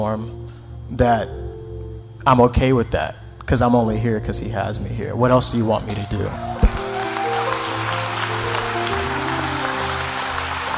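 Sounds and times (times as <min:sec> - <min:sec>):
speech: 0:00.0 - 0:01.4, 0:02.2 - 0:06.8
audience clapping: 0:06.2 - 0:10.7.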